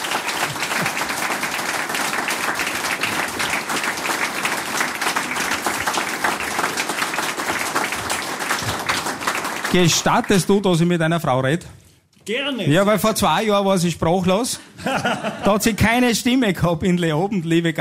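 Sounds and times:
audience applause: 0.0 - 10.8
speech: 9.8 - 17.7
laughter: 14.8 - 15.8.

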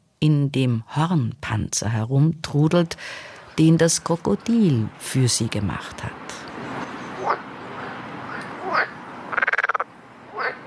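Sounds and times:
speech: 0.2 - 6.2
frog croaking: 6.4 - 10.6.

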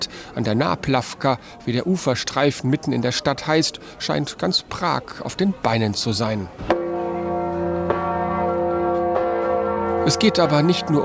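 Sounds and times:
speech: 0.4 - 6.8, 10.0 - 11.0
large bell ringing: 6.7 - 11.0.

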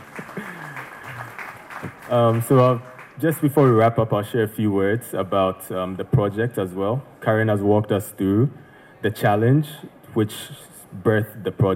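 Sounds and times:
audience applause: 0.0 - 3.8
speech: 2.1 - 11.7.

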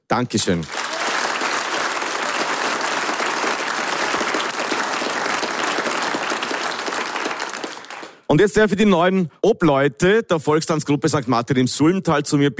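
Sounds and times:
speech: 0.1 - 0.9, 8.3 - 12.5
audience applause: 0.5 - 8.3.

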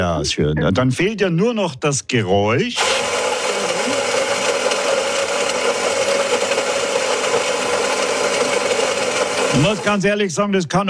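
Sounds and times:
speech: 0.0 - 3.2, 9.5 - 10.8
coffee grinder inside a coffee machine: 2.8 - 10.2.

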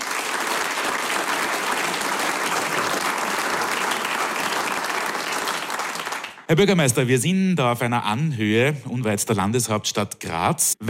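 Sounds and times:
audience applause welcoming the mayor at a singers' gathering in Lassnitzhöhe: 0.0 - 6.5
speech: 6.5 - 10.8.

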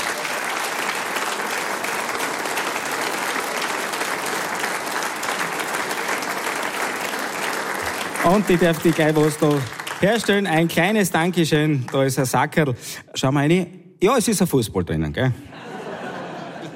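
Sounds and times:
audience applause: 0.0 - 12.1
speech: 8.2 - 15.5
laughter: 15.4 - 16.7.

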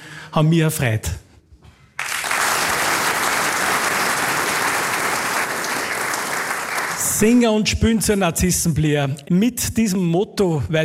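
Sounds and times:
speech: 0.3 - 1.2, 7.2 - 10.8
audience applause: 2.0 - 7.2.

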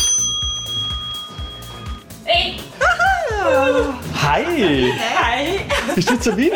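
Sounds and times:
doorbell ringing: 0.0 - 2.1
laughter: 2.8 - 6.5
speech: 3.8 - 6.5.

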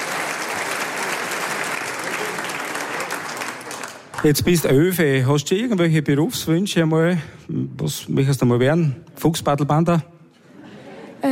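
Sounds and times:
crowd applauding: 0.0 - 4.9
speech: 4.2 - 10.1
laughter: 10.4 - 11.2.

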